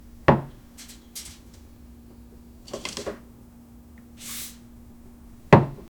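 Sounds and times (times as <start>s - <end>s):
utensils clinking in a cozy kitchen: 0.7s - 3.2s.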